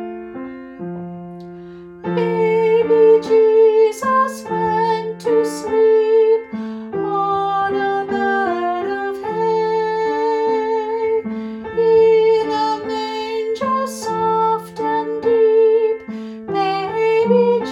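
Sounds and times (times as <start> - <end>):
vocals: 1.4 - 17.7.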